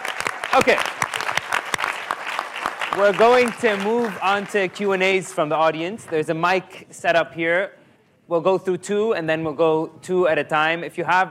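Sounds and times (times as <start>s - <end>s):
audience applause for panel: 0.0s - 5.4s
speech: 0.6s - 1.0s, 3.0s - 11.2s.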